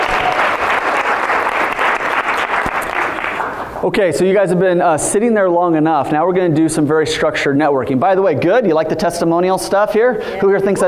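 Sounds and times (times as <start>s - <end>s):
round of applause: 0.0s - 3.8s
speech: 3.8s - 10.8s.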